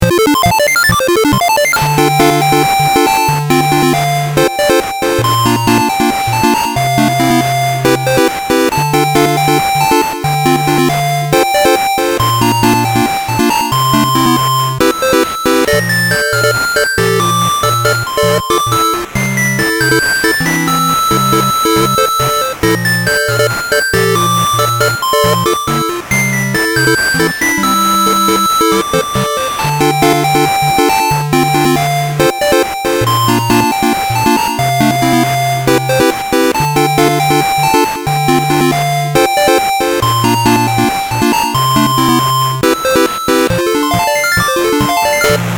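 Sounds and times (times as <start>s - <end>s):
8-bit chiptune music: 0.0s - 45.5s.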